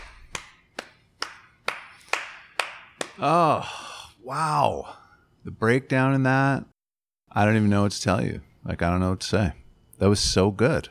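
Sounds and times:
hand clapping: 0:00.0 - 0:03.3
speech: 0:03.2 - 0:06.7, 0:07.3 - 0:10.8.

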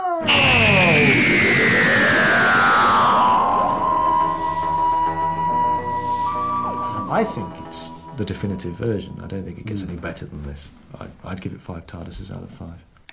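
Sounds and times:
electronic TV closing theme music: 0:00.0 - 0:09.7
swooping high tone: 0:00.0 - 0:09.8
speech: 0:07.2 - 0:12.9.

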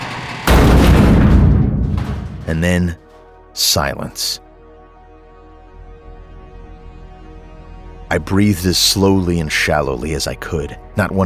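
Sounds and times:
creature smashing against garage door: 0:00.4 - 0:02.8
speech: 0:02.5 - 0:03.0, 0:03.6 - 0:04.4, 0:08.1 - 0:11.2.

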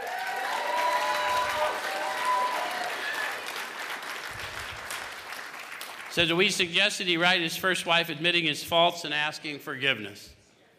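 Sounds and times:
scattered cheers and whistles: 0:00.0 - 0:03.6
crowd applauding: 0:00.0 - 0:06.4
speech: 0:06.1 - 0:10.4.

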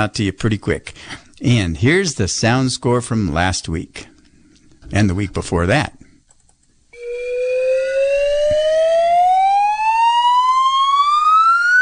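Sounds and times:
speech: 0:00.0 - 0:04.1, 0:04.9 - 0:06.0
slide whistle: 0:07.0 - 0:11.8.

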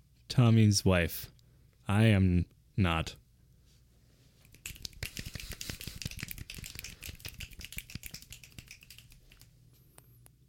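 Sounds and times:
speech: 0:00.4 - 0:03.2
finger snapping: 0:04.5 - 0:10.1.

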